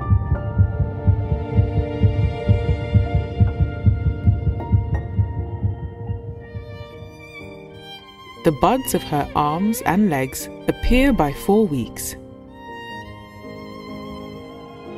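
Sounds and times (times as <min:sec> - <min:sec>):
fetal heartbeat: 0:00.0 - 0:07.5
speech: 0:08.4 - 0:12.2.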